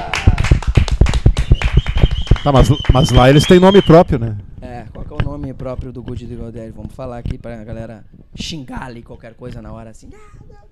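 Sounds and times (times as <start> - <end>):
applause: 0.0 - 4.0
speech: 2.4 - 10.7.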